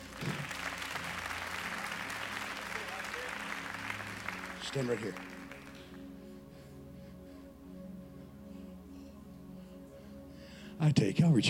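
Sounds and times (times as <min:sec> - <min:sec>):
audience hand clapping: 0:00.0 - 0:06.1
speech: 0:04.7 - 0:05.4, 0:10.8 - 0:11.4.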